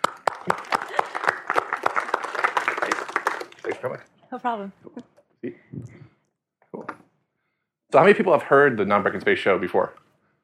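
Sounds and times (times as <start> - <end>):
audience applause: 0.0 - 4.0
speech: 0.4 - 0.8, 3.8 - 5.6, 7.9 - 10.0.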